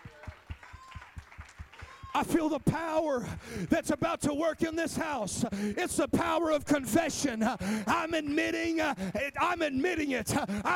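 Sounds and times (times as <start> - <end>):
hands clapping: 0.0 - 3.3
speech: 2.2 - 10.7.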